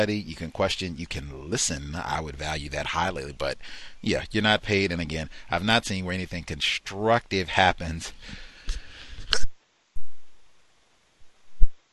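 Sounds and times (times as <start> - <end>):
speech: 0.0 - 9.5
person sneezing: 8.7 - 9.5.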